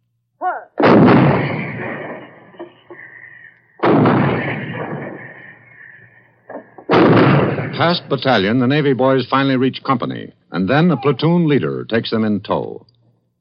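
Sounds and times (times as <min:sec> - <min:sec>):
155 artillery guns shelling enemy installations: 0:00.8 - 0:08.1
speech: 0:07.8 - 0:12.9.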